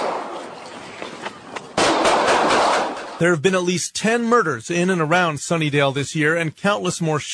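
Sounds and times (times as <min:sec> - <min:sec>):
gunshots recorded on a cell phone: 0:00.0 - 0:00.5, 0:01.8 - 0:03.2
speech: 0:03.2 - 0:07.3.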